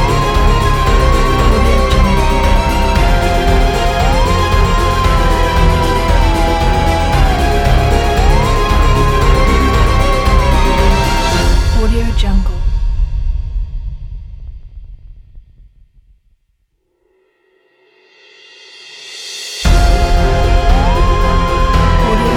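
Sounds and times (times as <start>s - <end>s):
spooky fun Halloween music: 0.0s - 13.1s, 19.6s - 22.3s.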